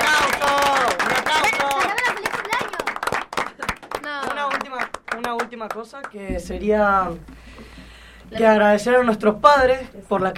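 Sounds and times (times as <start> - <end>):
group clapping: 0.0 - 6.3
speech: 5.6 - 7.3, 8.3 - 10.3.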